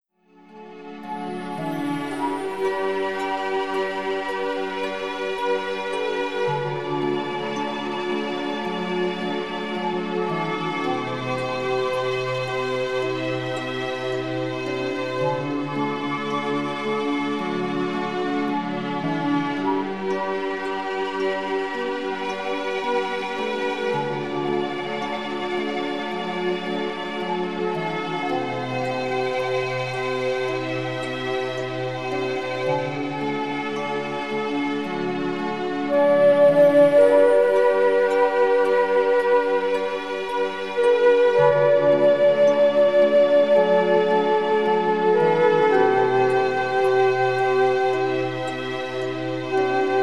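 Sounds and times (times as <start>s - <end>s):
spa music at 432 Hz: 0.4s - 50.0s.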